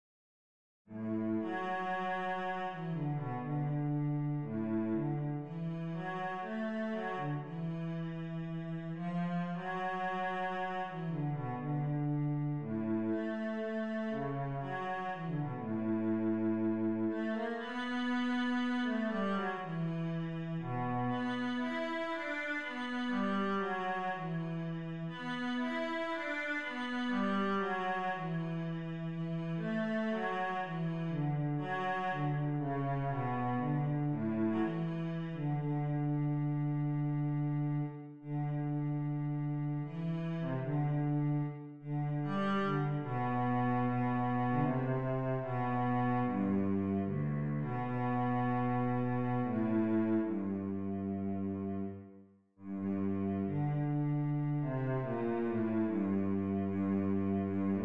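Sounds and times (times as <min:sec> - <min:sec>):
cello concerto in B minor: 0:00.9 - 0:57.8.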